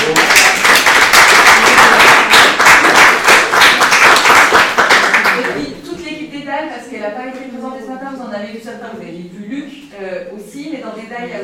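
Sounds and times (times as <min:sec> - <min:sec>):
audience applause: 0:00.0 - 0:05.6.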